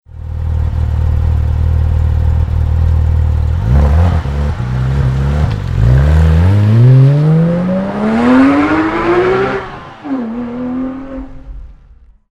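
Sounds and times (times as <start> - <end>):
Porsche road-going RSR engine starting: 0.1 - 12.1.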